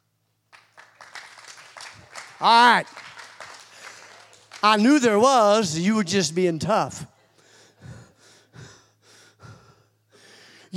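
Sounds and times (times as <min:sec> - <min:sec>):
audience clapping hands: 0:00.5 - 0:05.6
speech: 0:02.4 - 0:03.0, 0:04.6 - 0:07.1.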